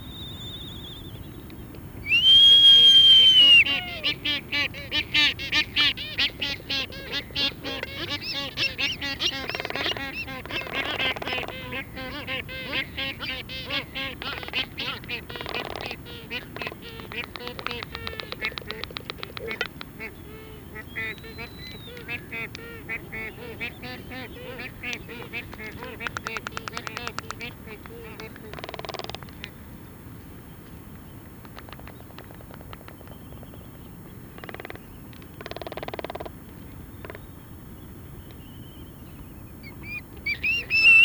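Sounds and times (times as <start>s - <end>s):
black-footed albatross colony calls: 2.1s - 29.2s, 39.9s - 41.0s.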